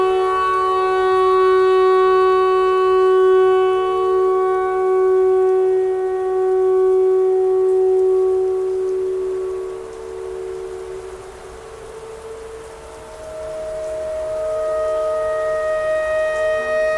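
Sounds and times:
clarinet notes: 0.0s - 16.9s
noise: 0.0s - 16.9s
tornado siren: 0.0s - 16.9s.

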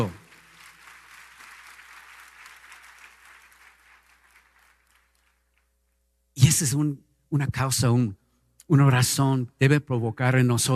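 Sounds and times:
speech: 0.0s - 0.2s, 6.6s - 10.7s
audience applauding: 0.0s - 5.7s.

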